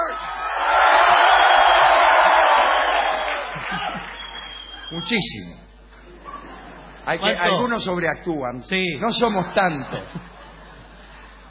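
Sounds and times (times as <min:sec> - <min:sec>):
crowd shouting: 0:00.0 - 0:04.2
laughter: 0:03.3 - 0:04.2, 0:06.0 - 0:07.9, 0:09.1 - 0:11.4
speech: 0:05.0 - 0:05.6, 0:07.1 - 0:10.2.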